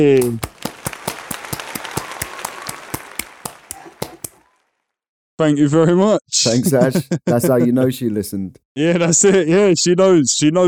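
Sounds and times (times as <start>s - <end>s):
speech: 0.0s - 0.5s, 5.4s - 10.6s
round of applause: 0.0s - 4.8s
laughter: 0.1s - 4.4s, 6.4s - 8.4s.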